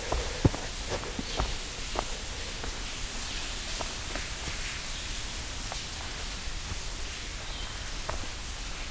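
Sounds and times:
small waterfall flowing through rock crevice: 0:00.0 - 0:08.9.

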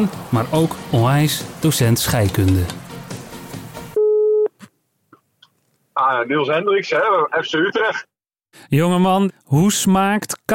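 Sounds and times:
speech: 0:00.0 - 0:02.8, 0:06.0 - 0:10.5
telephone call ringing tone: 0:04.0 - 0:04.5.

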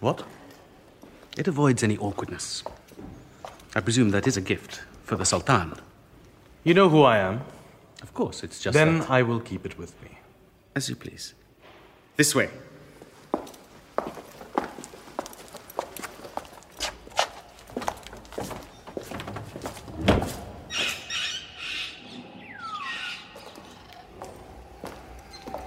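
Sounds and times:
speech: 0:00.0 - 0:00.4, 0:01.4 - 0:03.1, 0:03.7 - 0:05.9, 0:06.6 - 0:10.2, 0:10.8 - 0:11.4, 0:12.2 - 0:12.7
footsteps: 0:13.0 - 0:21.2, 0:23.3 - 0:25.6
animals squealing and squawking in a Sultan's menagerie: 0:20.6 - 0:25.6.

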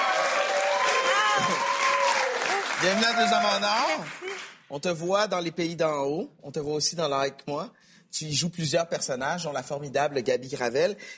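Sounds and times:
voices cheering: 0:00.0 - 0:04.1
studio audience applause: 0:00.0 - 0:04.7
speech: 0:01.4 - 0:01.7, 0:02.8 - 0:11.1.

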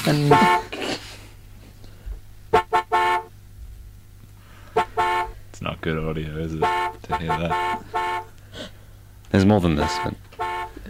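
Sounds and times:
speech: 0:00.0 - 0:00.6, 0:05.6 - 0:08.1, 0:09.3 - 0:10.3
car horns honking at drive-through queue: 0:00.0 - 0:00.8, 0:02.5 - 0:03.4, 0:04.5 - 0:05.5, 0:06.1 - 0:08.4, 0:09.4 - 0:10.8
low idling engine hum: 0:00.0 - 0:10.8.

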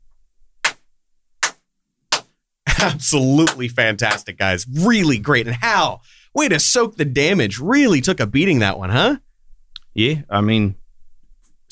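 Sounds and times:
hand clapping: 0:00.6 - 0:04.3
speech: 0:02.8 - 0:09.3, 0:10.0 - 0:10.8.

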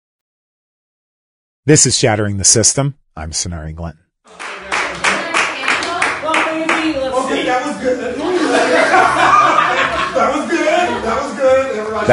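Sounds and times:
speech: 0:01.6 - 0:04.4, 0:07.5 - 0:12.1
person happily clapping hands: 0:04.3 - 0:06.9
laughter: 0:07.2 - 0:12.1.

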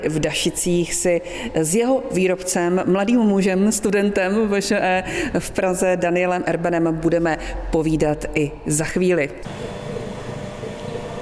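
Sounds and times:
speech: 0:00.0 - 0:09.7
pump of a cider plate filter: 0:09.4 - 0:11.1.

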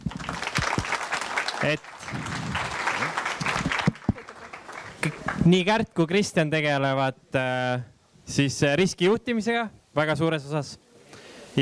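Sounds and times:
audience applause: 0:00.0 - 0:05.6
speech: 0:01.6 - 0:02.2, 0:05.5 - 0:10.8.

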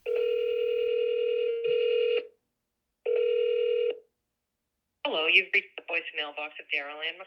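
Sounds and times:
telephone ringing tones: 0:00.0 - 0:02.3, 0:03.1 - 0:04.0
person speaking on the phone line: 0:05.1 - 0:07.2.

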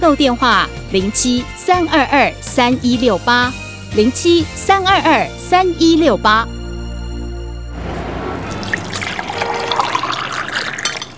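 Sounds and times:
speech: 0:00.0 - 0:06.5
tea pouring into a cup: 0:08.4 - 0:11.1.

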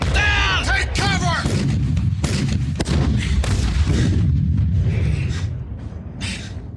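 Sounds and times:
gunfire in a shootout with aliens: 0:00.0 - 0:04.8.

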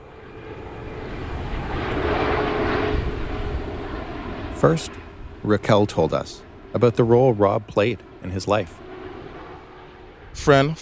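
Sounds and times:
airplane flying over football field under Toronto's International Airport landing path: 0:00.0 - 0:10.8
speech: 0:04.6 - 0:08.8, 0:10.4 - 0:10.8.

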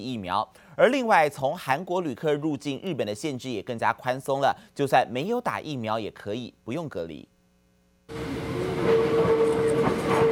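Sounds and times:
speech: 0:00.0 - 0:07.3, 0:08.1 - 0:08.5
train running on rails: 0:08.1 - 0:10.3.

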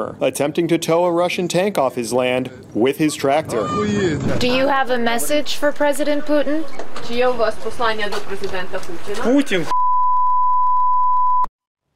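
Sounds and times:
speech: 0:00.0 - 0:09.8
censorship bleep tone: 0:09.7 - 0:11.5.

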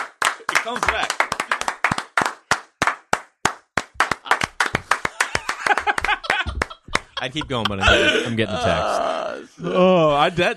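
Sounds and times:
hand clapping: 0:00.0 - 0:07.8
speech: 0:00.6 - 0:01.3, 0:07.2 - 0:10.5
laughter: 0:04.2 - 0:10.5.

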